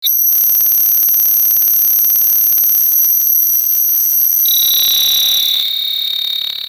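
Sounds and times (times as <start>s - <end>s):
digital buzzing rattle glitch: 0.0s - 6.6s.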